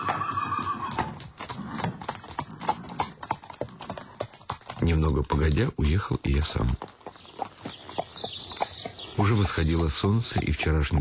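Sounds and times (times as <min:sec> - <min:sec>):
horse whinnying: 0:00.0 - 0:04.0
hooves of horses pulling a tarantas carriage clip-clopping on a hard surface: 0:00.0 - 0:10.9
speech: 0:04.8 - 0:07.0, 0:09.2 - 0:10.9.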